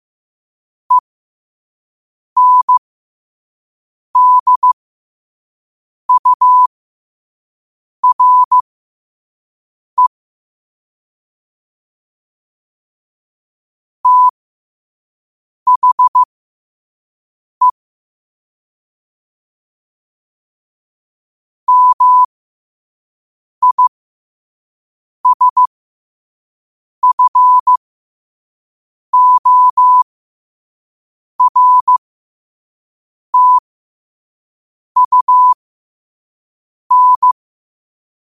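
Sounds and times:
morse code at 5 wpm: 2.4 - 2.8, 4.2 - 4.8, 6.1 - 6.7, 8.0 - 8.6, 14.0 - 14.3, 15.7 - 16.3, 21.7 - 22.3, 23.6 - 23.9, 25.2 - 25.7, 27.0 - 27.8, 29.2 - 30.0, 31.4 - 32.0, 33.4 - 33.6, 35.0 - 35.6, 36.9 - 37.4.

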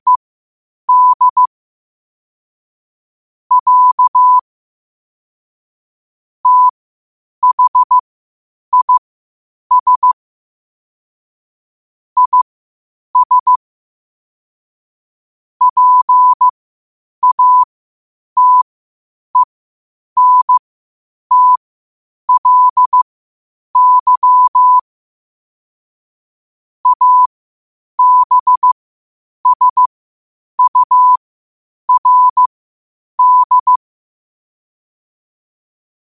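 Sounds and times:
morse code at 5 wpm: 0.9 - 1.5, 3.5 - 4.4, 6.4 - 6.7, 7.4 - 8.0, 8.7 - 9.0, 9.7 - 10.2, 12.2 - 12.4, 13.2 - 13.6, 15.6 - 16.5, 17.2 - 17.7, 18.4 - 18.6, 20.2 - 20.6, 21.3 - 21.6, 22.3 - 23.0, 23.8 - 24.8, 26.8 - 27.3, 28.0 - 28.8, 29.4 - 29.9, 30.6 - 31.2, 31.9 - 32.5, 33.2 - 33.8.

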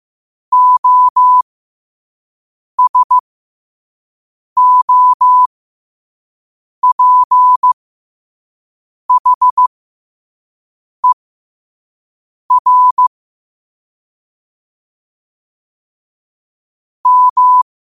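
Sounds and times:
morse code at 5 wpm: 0.5 - 1.4, 2.8 - 3.2, 4.6 - 5.5, 6.8 - 7.8, 9.1 - 9.7, 12.5 - 13.1, 17.0 - 17.6.

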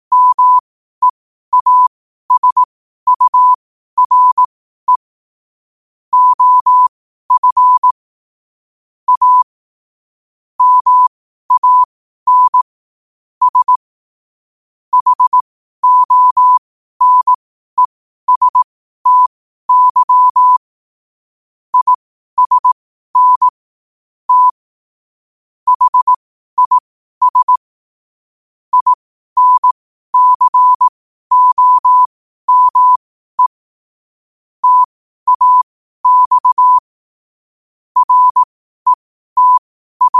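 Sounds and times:
morse code at 5 wpm: 0.1 - 5.1, 6.1 - 8.0, 9.1 - 9.5, 10.6 - 12.7, 13.4 - 13.8, 14.9 - 17.4, 18.3 - 20.6, 21.8 - 23.6, 24.3 - 24.6, 25.7 - 27.6, 28.7 - 33.6, 34.6 - 36.8, 38.0 - 40.1.

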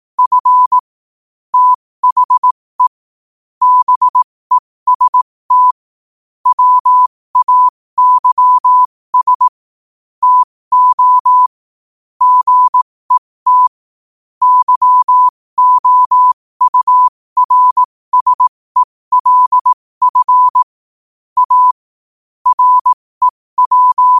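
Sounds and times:
morse code at 5 wpm: 0.2 - 0.8, 1.6 - 3.0, 3.6 - 4.2, 4.9 - 5.8, 6.4 - 9.5, 10.2 - 11.5, 12.2 - 13.8, 14.4 - 20.7, 21.4 - 21.8, 22.4 - 24.1.

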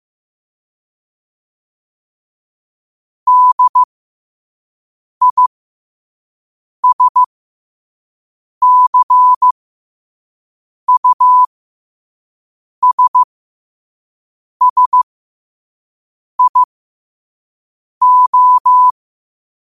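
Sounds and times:
morse code at 5 wpm: 3.3 - 3.9, 5.2 - 5.5, 6.8 - 7.3, 8.6 - 9.5, 10.9 - 11.5, 12.8 - 13.3, 14.6 - 15.0, 16.4 - 16.7, 18.0 - 18.9.

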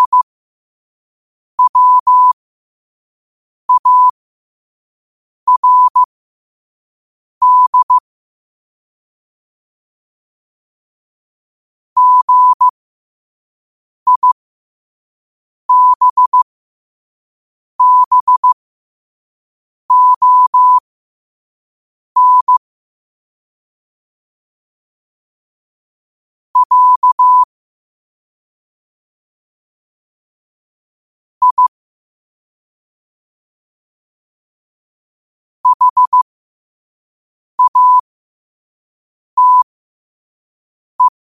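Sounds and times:
morse code at 5 wpm: 0.0 - 0.3, 1.6 - 2.4, 3.7 - 4.2, 5.5 - 6.1, 7.4 - 8.0, 12.0 - 12.7, 14.1 - 14.4, 15.7 - 16.4, 17.8 - 18.6, 19.9 - 20.8, 22.2 - 22.6, 26.6 - 27.5, 31.4 - 31.8, 35.6 - 36.2, 37.6 - 38.0, 39.4 - 39.6, 41.0 - 41.2.

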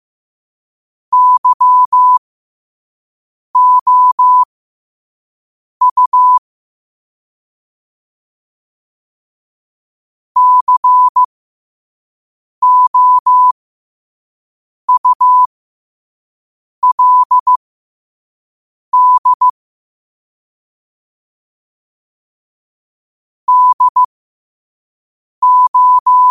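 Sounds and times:
morse code at 5 wpm: 1.1 - 2.2, 3.6 - 4.5, 5.8 - 6.4, 10.4 - 11.3, 12.6 - 13.5, 14.9 - 15.5, 16.8 - 17.6, 19.0 - 19.6, 23.5 - 24.1, 25.4 - 26.2.

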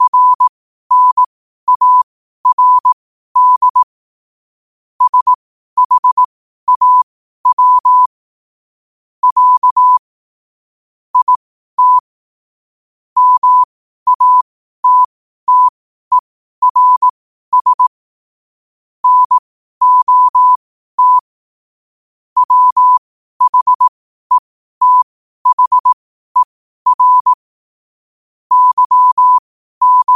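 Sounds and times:
morse code at 5 wpm: 0.0 - 3.9, 5.0 - 8.1, 9.2 - 10.0, 11.2 - 12.1, 13.2 - 17.9, 19.0 - 21.3, 22.4 - 27.4, 28.5 - 30.1.

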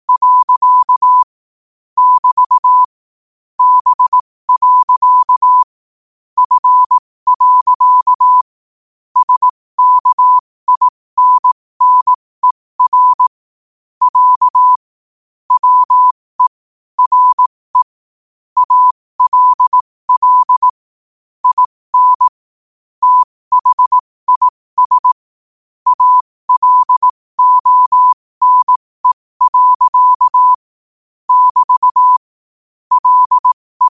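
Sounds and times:
morse code at 5 wpm: 0.1 - 1.3, 2.0 - 2.9, 3.6 - 5.7, 6.4 - 8.5, 9.2 - 13.4, 14.0 - 14.8, 15.5 - 18.0, 18.6 - 20.7, 21.4 - 22.4, 23.0 - 25.2, 25.9 - 30.7, 31.3 - 32.3, 32.9 - 33.9.

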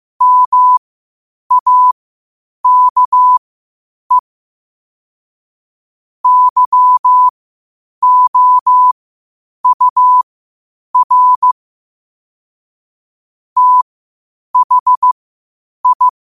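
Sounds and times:
morse code at 5 wpm: 0.2 - 0.8, 1.5 - 2.0, 2.6 - 3.4, 6.2 - 7.3, 8.0 - 9.0, 9.6 - 10.2, 11.0 - 11.6, 13.6 - 13.8, 14.6 - 15.2, 15.8 - 16.2.

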